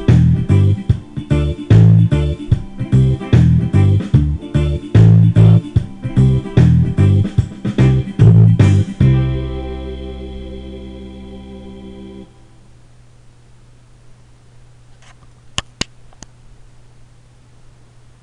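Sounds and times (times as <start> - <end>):
reggae accompaniment: 0.0 - 12.4.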